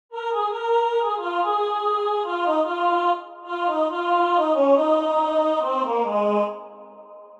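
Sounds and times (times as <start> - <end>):
voice singing ooh: 0.1 - 7.3.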